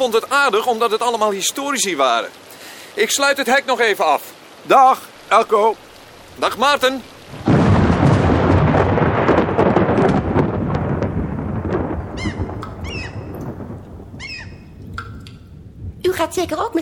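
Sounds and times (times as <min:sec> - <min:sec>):
speech: 0:00.0 - 0:05.8, 0:06.4 - 0:07.5, 0:16.3 - 0:16.8
loud steady downpour with a deep rumbling wash: 0:00.0 - 0:16.8
short high-pitched squeaks and chirps: 0:12.2 - 0:13.4, 0:14.2 - 0:14.7.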